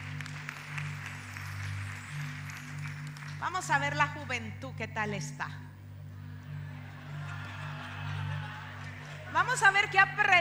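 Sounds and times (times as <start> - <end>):
crowd clapping: 0.0 - 4.0, 6.8 - 9.8
speech: 3.4 - 5.7, 9.4 - 10.4
laughter: 6.3 - 10.2.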